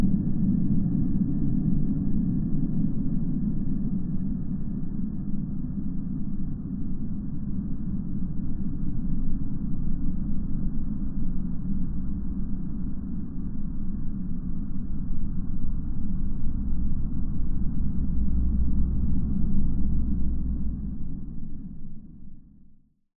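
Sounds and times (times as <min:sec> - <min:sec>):
science fiction cold desolate wind: 0:00.0 - 0:22.7
science fiction atmosphere rumble: 0:14.9 - 0:22.7.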